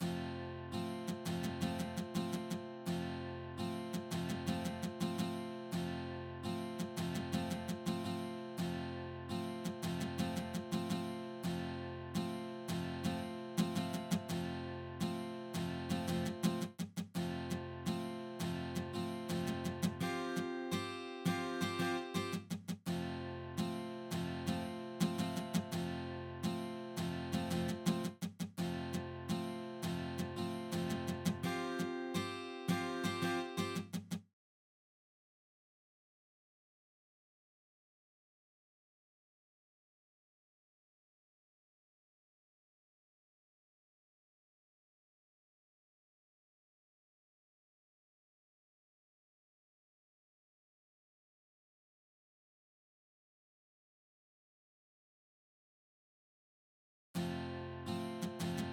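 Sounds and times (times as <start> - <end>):
sampled violão acoustic guitar: 0.0 - 34.2, 57.2 - 58.7.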